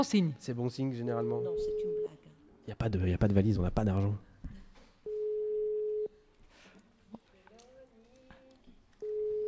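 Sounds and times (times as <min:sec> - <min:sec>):
speech: 0:00.0 - 0:02.0, 0:02.7 - 0:04.3
telephone ringback tone: 0:01.2 - 0:02.1, 0:05.1 - 0:06.1, 0:09.0 - 0:09.4.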